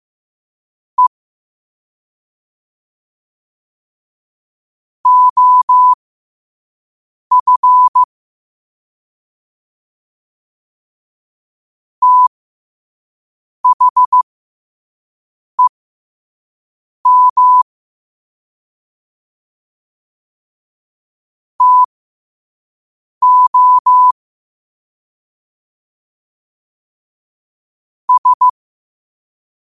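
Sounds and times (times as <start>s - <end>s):
morse code at 5 wpm: 5.1s - 6.0s, 7.3s - 8.1s, 12.0s - 12.3s, 13.6s - 14.2s, 17.1s - 17.6s, 21.6s - 21.9s, 23.2s - 24.2s, 28.1s - 28.6s.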